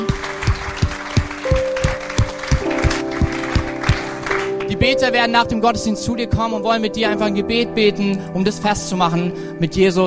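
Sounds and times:
audience applause: 0:00.0 - 0:04.7
speech: 0:04.8 - 0:10.0.

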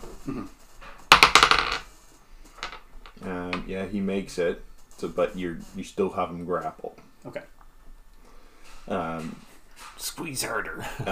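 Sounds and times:
speech: 0:00.2 - 0:00.6, 0:03.2 - 0:07.6, 0:08.8 - 0:09.5, 0:10.1 - 0:11.1
dice clattering across a hard surface: 0:01.1 - 0:01.9, 0:02.6 - 0:03.7.

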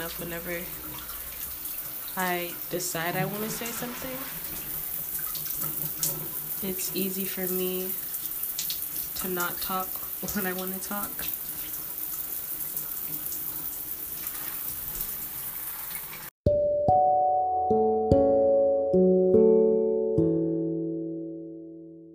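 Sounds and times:
shower water running: 0:00.0 - 0:16.3
speech: 0:00.1 - 0:01.1, 0:02.2 - 0:04.7, 0:06.6 - 0:08.1, 0:09.2 - 0:11.4
ringing sustained musical notes: 0:16.5 - 0:22.1.

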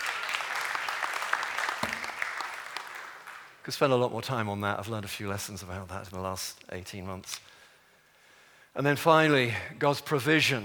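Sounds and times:
audience clapping: 0:00.0 - 0:03.7
speech: 0:03.7 - 0:07.5, 0:08.8 - 0:10.6.

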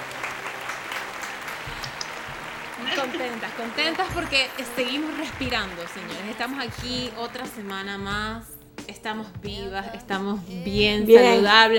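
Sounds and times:
applause sound effect: 0:00.0 - 0:08.1
speech: 0:02.9 - 0:11.7.

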